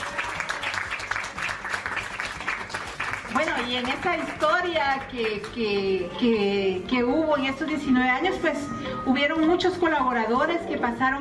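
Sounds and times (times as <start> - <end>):
crowd applause: 0.0 - 5.5
speech: 3.6 - 11.2.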